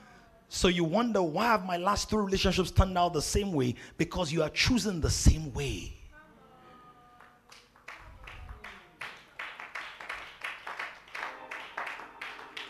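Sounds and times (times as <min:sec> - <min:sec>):
speech: 0:00.5 - 0:06.0
audience clapping: 0:07.2 - 0:12.6.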